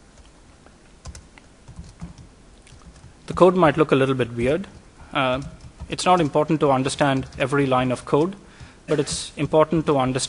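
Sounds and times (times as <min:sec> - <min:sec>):
computer keyboard typing while code is written: 0:01.0 - 0:03.8, 0:04.4 - 0:10.0
speech: 0:03.3 - 0:10.2.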